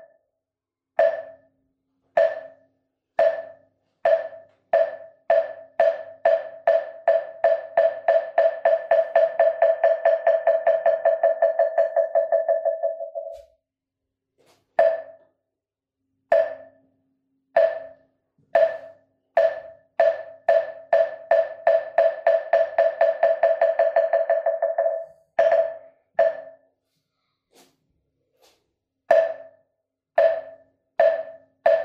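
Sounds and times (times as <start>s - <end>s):
moktak wooden fish percussion: 1.0s - 1.5s, 2.2s - 13.4s, 14.8s - 15.2s, 16.3s - 16.8s, 17.6s - 26.7s, 29.1s - 31.8s.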